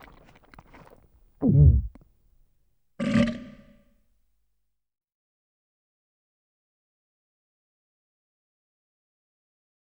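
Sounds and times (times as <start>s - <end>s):
eating a fly: 0.0s - 2.0s.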